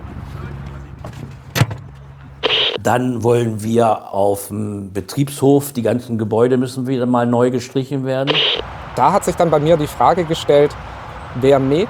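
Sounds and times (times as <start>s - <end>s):
person climbing into a golf cart on a golf course: 1.0s - 2.1s
speech: 2.8s - 11.8s.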